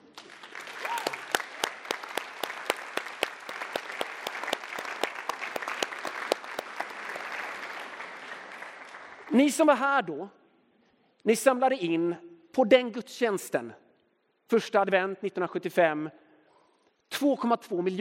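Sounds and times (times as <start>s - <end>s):
audience applause in a reverberant church: 0.0s - 9.3s
speech: 9.4s - 10.4s, 11.2s - 13.8s, 14.5s - 16.2s, 17.2s - 18.0s.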